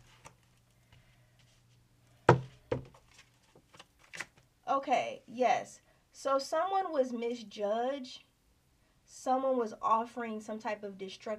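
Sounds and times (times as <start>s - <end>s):
tarot cards being shuffled: 2.7s - 4.4s
speech: 4.8s - 8.3s, 9.2s - 11.3s.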